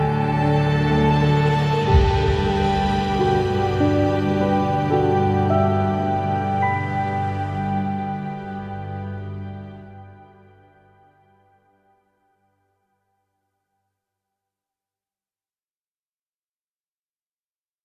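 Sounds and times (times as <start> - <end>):
peaceful ambient music: 0.0 - 13.2.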